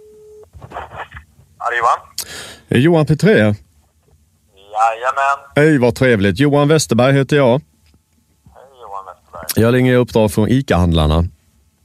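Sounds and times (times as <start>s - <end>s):
telephone ringing tone on outgoing call: 0.0s - 0.4s
speech: 1.7s - 3.6s, 4.8s - 7.7s, 9.4s - 11.4s
people talking over a phone line: 4.6s - 5.7s, 8.5s - 9.8s.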